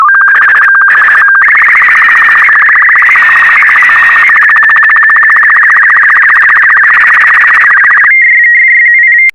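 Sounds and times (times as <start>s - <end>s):
SSTV signal: 0.0s - 9.3s.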